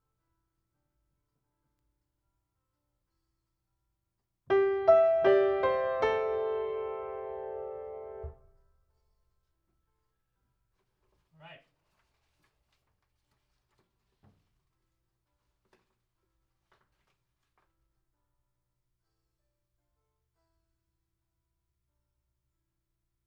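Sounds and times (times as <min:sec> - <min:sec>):
piano: 0:04.5 - 0:08.6.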